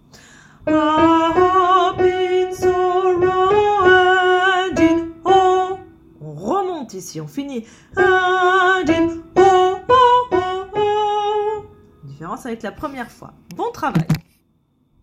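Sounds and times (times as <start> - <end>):
second soprano part singing: 0.6 - 6.0, 7.9 - 11.8.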